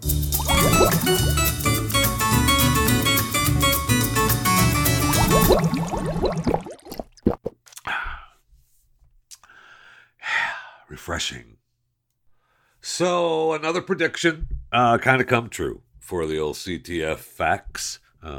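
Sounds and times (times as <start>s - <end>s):
loud music: 0.0s - 6.2s
ice-cold drink pouring: 0.3s - 1.6s, 4.9s - 7.5s
speech: 13.0s - 18.3s.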